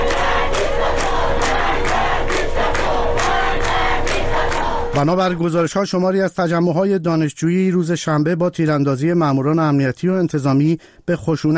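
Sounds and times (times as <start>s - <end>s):
students chanting slogans at a protest: 0.0s - 5.0s
speech: 5.0s - 11.5s.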